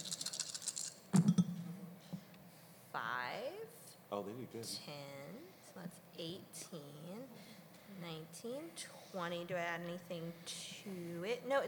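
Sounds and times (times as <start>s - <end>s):
several six-sided dice rolling: 0.0s - 1.0s
speech: 2.9s - 11.6s.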